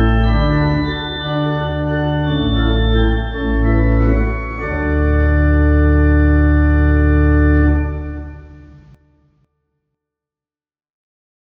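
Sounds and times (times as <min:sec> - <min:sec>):
trumpet piece: 0:00.0 - 0:09.0.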